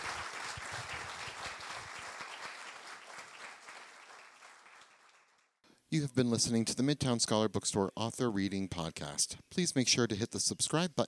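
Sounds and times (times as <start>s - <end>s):
round of applause: 0.0s - 5.6s
speech: 5.9s - 11.0s.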